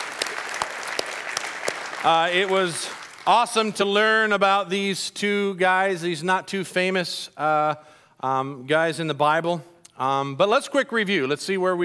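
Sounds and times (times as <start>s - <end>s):
audience applause: 0.0s - 4.3s
speech: 2.0s - 11.8s.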